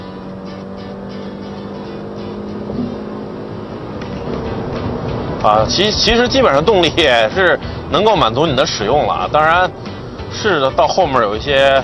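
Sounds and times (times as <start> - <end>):
small car engine revving at high rpm: 0.0 - 6.0
speech: 5.4 - 11.8.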